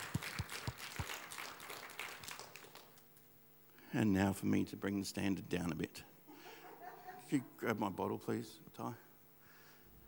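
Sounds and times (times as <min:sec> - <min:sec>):
round of applause: 0:00.0 - 0:03.3
speech: 0:03.9 - 0:06.1, 0:07.3 - 0:09.1
laughter: 0:06.3 - 0:07.6.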